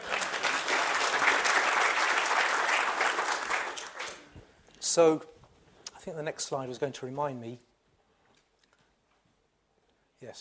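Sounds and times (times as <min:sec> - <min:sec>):
room full of people clapping: 0:00.0 - 0:04.4
speech: 0:05.0 - 0:05.3, 0:06.0 - 0:07.7, 0:10.2 - 0:10.4.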